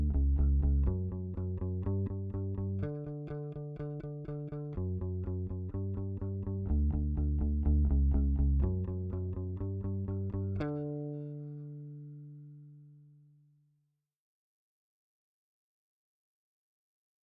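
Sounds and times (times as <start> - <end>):
bass: 0.0 - 13.7.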